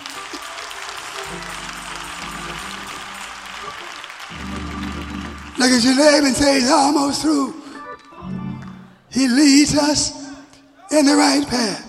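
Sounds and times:
audience clapping hands: 0.0 - 6.7, 8.5 - 8.9
speech: 5.6 - 7.6, 9.2 - 10.2, 10.9 - 11.8.

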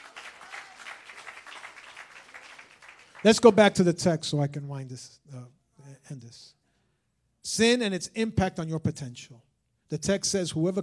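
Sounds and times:
crowd clapping: 0.0 - 3.8
speech: 3.2 - 6.6, 7.4 - 10.8.

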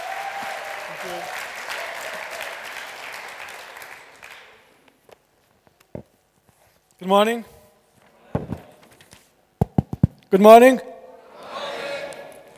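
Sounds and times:
audience applause welcoming a speaker at a Teen Challenge gathering: 0.0 - 4.8
speech: 1.0 - 1.4, 7.0 - 7.5, 10.3 - 10.9
scattered claps and thumps: 8.4 - 8.7, 9.6 - 10.4.

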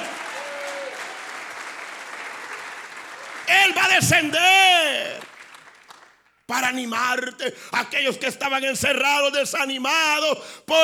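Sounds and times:
audience clapping: 0.0 - 6.5
speech: 3.5 - 5.2, 6.5 - 10.8.

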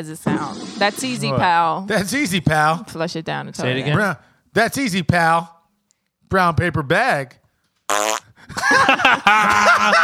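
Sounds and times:
speech: 0.0 - 5.6, 6.3 - 10.0
loud buzzy reedy fart: 7.9 - 8.3
laughter: 8.4 - 10.0.

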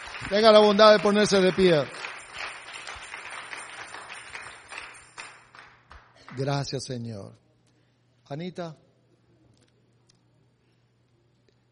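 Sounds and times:
audience applause: 0.0 - 6.6
speech: 0.2 - 2.0, 6.4 - 7.4, 8.3 - 8.8.

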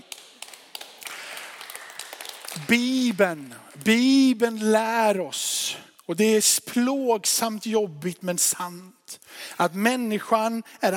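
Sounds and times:
audience applauding: 0.0 - 3.6
speech: 2.6 - 10.9.

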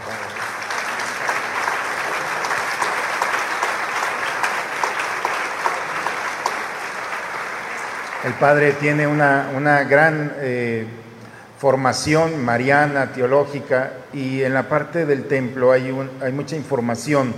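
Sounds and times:
crowd applauding loudly: 0.0 - 9.9
speech: 8.2 - 11.0, 11.6 - 17.3.

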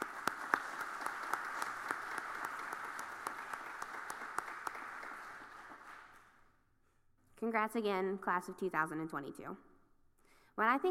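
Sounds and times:
audience applause for graduates: 0.0 - 6.2
speech: 7.4 - 9.7, 10.6 - 10.8.

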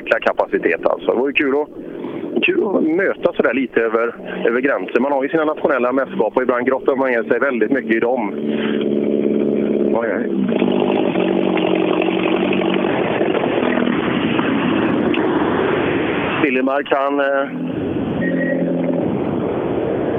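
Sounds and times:
car engine droning with a rough raspy exhaust note: 0.0 - 20.1
speech: 0.1 - 8.9, 10.0 - 10.7, 16.6 - 17.9.

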